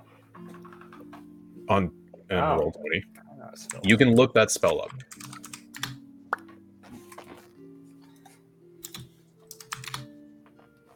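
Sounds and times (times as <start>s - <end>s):
speech: 1.7s - 5.3s
fingers typing on a computer keyboard during a Roll20 game session: 4.6s - 6.0s, 8.8s - 10.1s.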